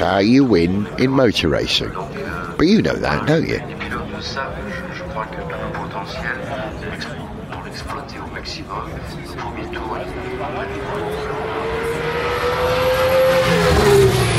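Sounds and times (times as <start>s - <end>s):
speech: 0.0s - 7.2s, 7.8s - 11.4s
Alpine race car braking into Tête Rouge: 2.4s - 14.3s.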